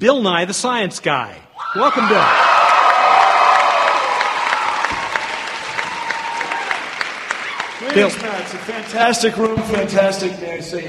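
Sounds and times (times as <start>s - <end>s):
speech: 0.0s - 2.8s, 7.9s - 10.8s
applause and cheering from a crowd of over 900 people in Prochnow Auditorium: 1.6s - 10.3s.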